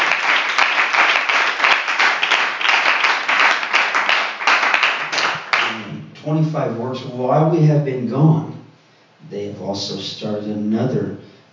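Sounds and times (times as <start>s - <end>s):
audience clapping hands: 0.0s - 5.9s
speech: 6.3s - 8.5s, 9.6s - 11.2s.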